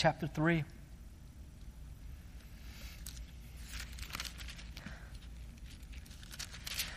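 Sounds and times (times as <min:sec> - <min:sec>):
pages of bibles being turned: 0:02.8 - 0:06.9.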